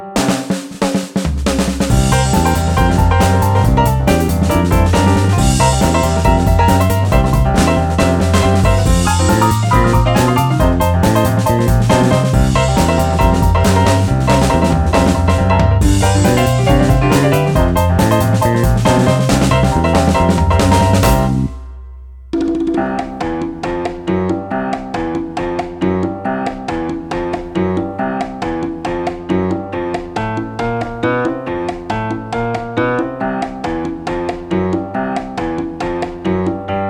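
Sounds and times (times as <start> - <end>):
kids blues music: 0.2 - 36.8.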